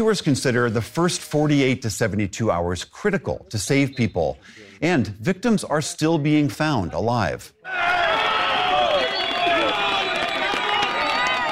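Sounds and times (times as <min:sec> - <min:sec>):
speech: 0:00.0 - 0:08.1
crowd applauding a rescue: 0:07.7 - 0:11.5.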